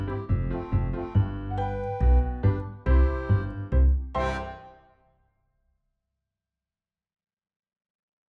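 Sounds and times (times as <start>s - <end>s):
recorder karaoke: 0.0s - 4.8s.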